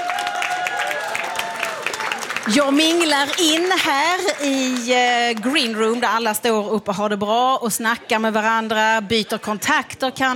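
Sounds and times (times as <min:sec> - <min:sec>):
crowd applause at a music competition final: 0:00.0 - 0:05.7
speech: 0:02.4 - 0:10.3.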